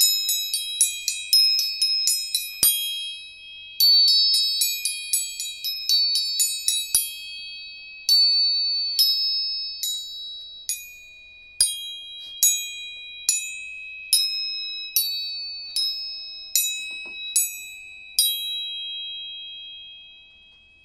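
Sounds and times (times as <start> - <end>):
tuning forks struck with metallic pings: 0.0 - 20.8.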